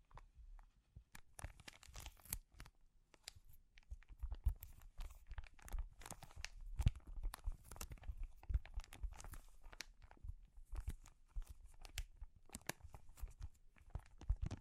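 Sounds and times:
crinkling and crumpling: 0.0s - 14.6s.

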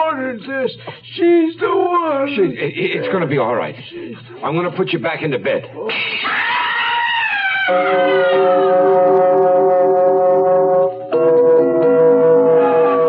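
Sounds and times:
speech: 0.3s - 6.5s, 7.7s - 8.7s
ambulance siren wailing: 6.6s - 13.0s.

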